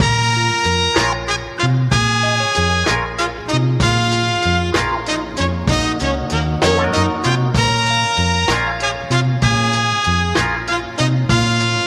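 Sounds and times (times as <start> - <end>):
horns: 0.0 - 11.8
phonky loops: 2.0 - 3.2.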